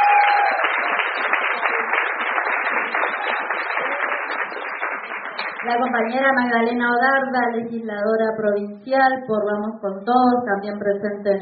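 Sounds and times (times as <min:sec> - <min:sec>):
audience applause: 0:00.0 - 0:05.8
speech: 0:05.7 - 0:11.4.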